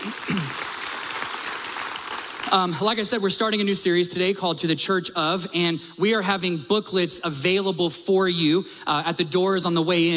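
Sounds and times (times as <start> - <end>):
audience clapping in a church: 0.0 - 3.2
speech: 2.5 - 10.1.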